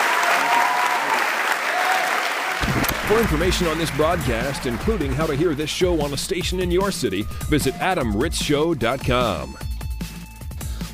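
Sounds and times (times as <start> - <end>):
large audience applauding: 0.0 - 6.3
speech: 3.1 - 9.7.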